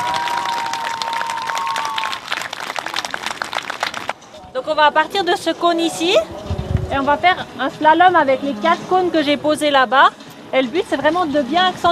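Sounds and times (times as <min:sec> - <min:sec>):
audience applause: 0:00.0 - 0:04.2
speech: 0:04.7 - 0:11.9.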